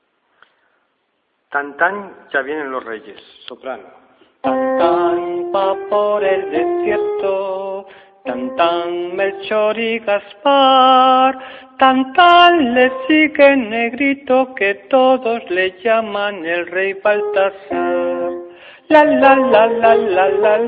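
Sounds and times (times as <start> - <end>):
soprano voices singing: 4.4 - 20.6.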